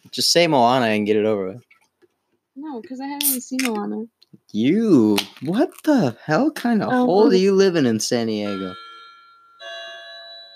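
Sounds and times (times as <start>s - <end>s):
speech: 0.1s - 1.7s, 2.6s - 8.8s
clock chiming the hour: 8.4s - 10.5s.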